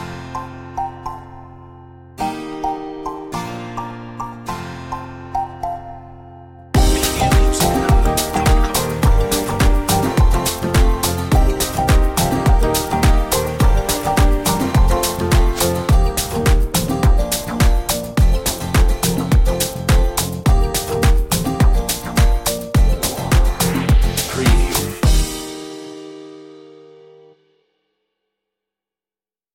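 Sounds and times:
island beats underscore: 0:06.8 - 0:25.6.

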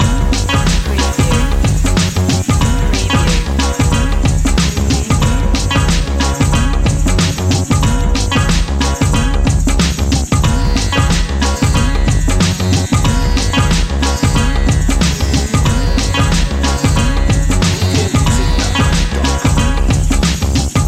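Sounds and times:
groove loop: 0:00.0 - 0:20.8.

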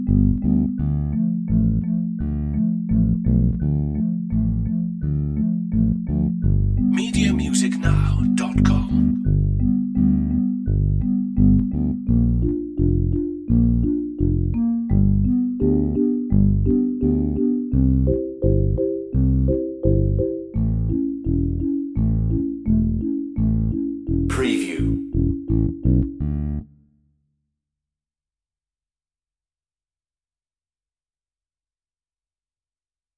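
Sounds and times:
bass: 0:00.0 - 0:26.9
marimbas: 0:06.8 - 0:25.8.

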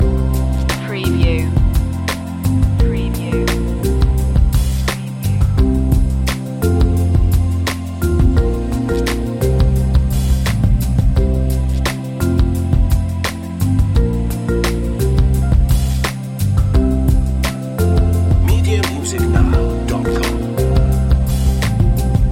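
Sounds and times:
lounge music: 0:00.0 - 0:22.3.

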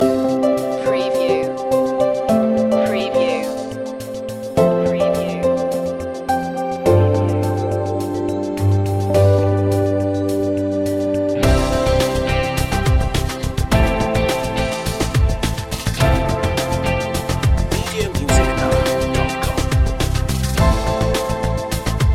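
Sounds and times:
corporate music loop: 0:00.0 - 0:22.1.

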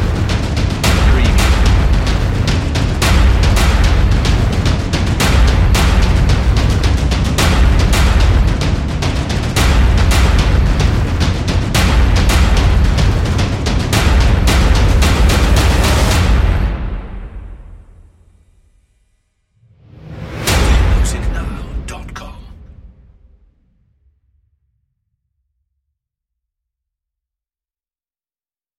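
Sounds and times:
drums: 0:00.0 - 0:18.4, 0:19.6 - 0:22.6.

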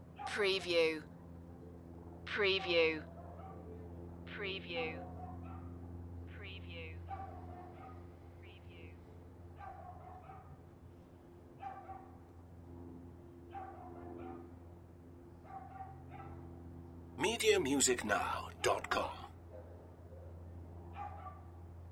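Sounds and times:
low steady hum: 0:00.0 - 0:15.5, 0:16.2 - 0:21.9
speech: 0:00.4 - 0:01.1, 0:02.3 - 0:03.1, 0:04.4 - 0:05.1, 0:17.4 - 0:19.2
dog yapping: 0:05.0 - 0:05.7, 0:07.1 - 0:08.0, 0:09.6 - 0:10.5, 0:11.6 - 0:12.1, 0:13.5 - 0:14.4, 0:15.5 - 0:16.4, 0:21.0 - 0:21.5.

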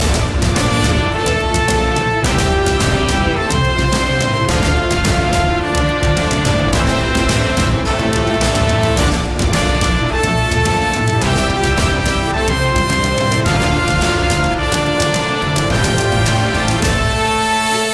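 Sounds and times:
8-bit space battle music: 0:00.0 - 0:17.9.

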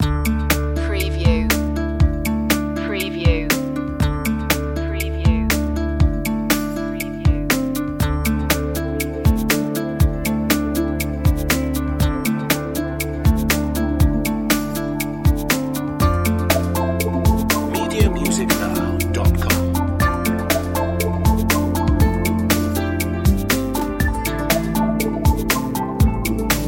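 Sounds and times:
chill floating guitars: 0:00.0 - 0:26.6.

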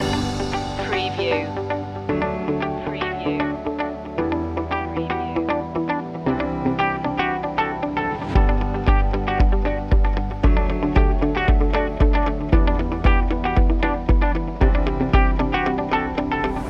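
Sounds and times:
easy corporate music loop: 0:00.0 - 0:16.6.

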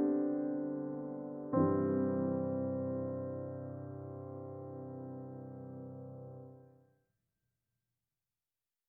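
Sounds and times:
piano: 0:00.0 - 0:06.8.

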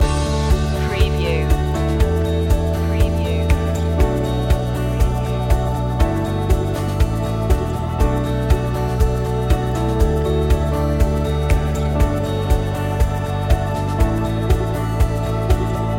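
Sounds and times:
music loop: 0:00.0 - 0:15.9.

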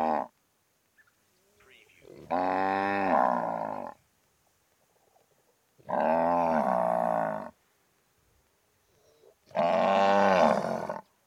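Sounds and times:
cow mooing: 0:02.0 - 0:04.0, 0:05.8 - 0:07.5, 0:09.5 - 0:11.0.

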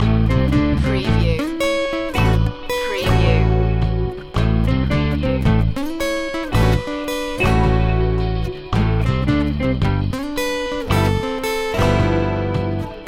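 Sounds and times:
sexy groovy music loop: 0:00.0 - 0:13.0.

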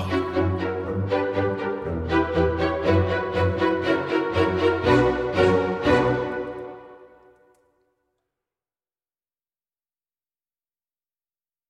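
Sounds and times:
string dance music without percussion: 0:00.0 - 0:07.2.

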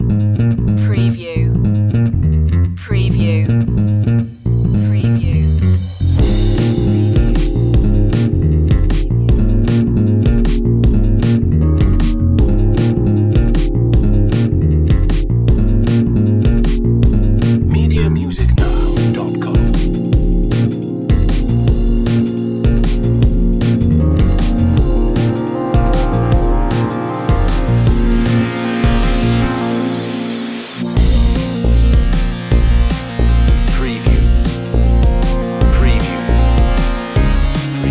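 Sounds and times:
chilled funk music: 0:00.0 - 0:37.8.

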